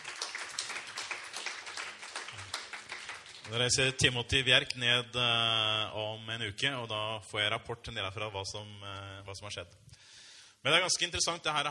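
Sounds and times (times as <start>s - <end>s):
audience applause: 0.0s - 3.6s
speech: 3.5s - 10.0s, 10.6s - 11.7s.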